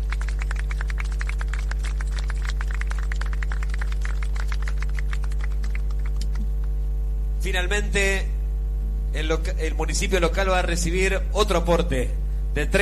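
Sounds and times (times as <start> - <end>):
crowd applauding: 0.0 - 6.5
low electrical hum: 0.0 - 12.7
speech: 7.5 - 8.3, 9.1 - 12.7.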